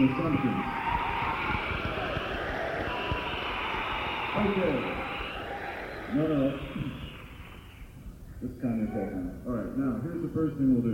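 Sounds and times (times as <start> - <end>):
speech: 0.0 - 0.8, 4.4 - 5.1, 6.1 - 7.0, 8.4 - 10.9
audience applause: 0.0 - 7.9.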